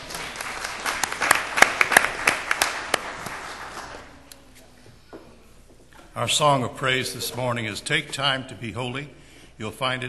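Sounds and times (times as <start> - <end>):
room full of people applauding: 0.0 - 4.1
speech: 6.2 - 10.0.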